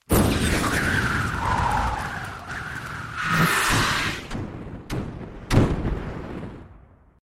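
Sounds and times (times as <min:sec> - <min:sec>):
wind while sprinting: 0:00.1 - 0:05.5.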